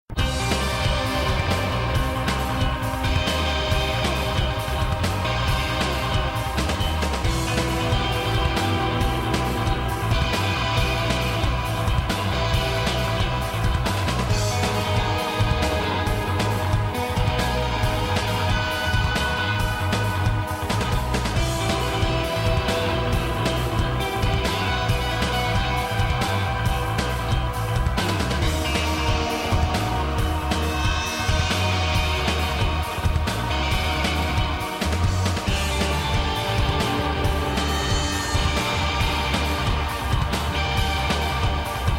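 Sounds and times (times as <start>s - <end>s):
instrumental music: 0.1s - 41.9s.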